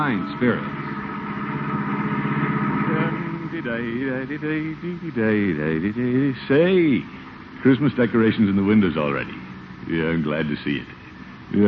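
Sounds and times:
speech: 0.0s - 0.8s, 3.6s - 11.6s
family car engine running while driving: 0.4s - 6.0s.

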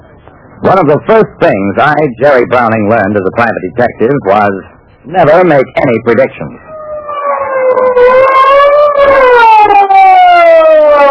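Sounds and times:
speech: 0.6s - 6.7s
police car siren wailing: 6.6s - 11.0s.

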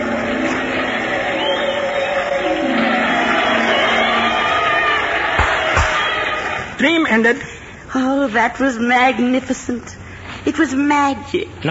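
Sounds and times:
crowd cheering: 0.0s - 7.0s
speech: 6.8s - 11.6s.

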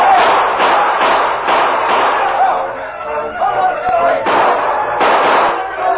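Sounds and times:
gunshots in a Western radio drama shootout between outlaw gang and sheriff's posse: 0.0s - 2.7s, 4.2s - 5.8s.

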